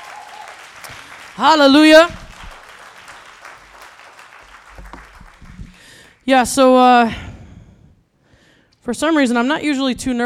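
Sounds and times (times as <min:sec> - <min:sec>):
audience hand clapping: 0:00.0 - 0:06.3
speech: 0:00.9 - 0:02.2, 0:06.3 - 0:07.3, 0:08.9 - 0:10.2.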